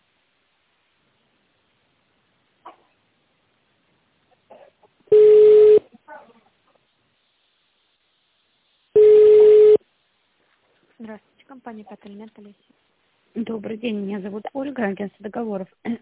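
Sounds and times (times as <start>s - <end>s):
touch-tone telephone beeps: 5.1s - 5.8s, 9.0s - 9.8s
speech: 11.0s - 16.0s.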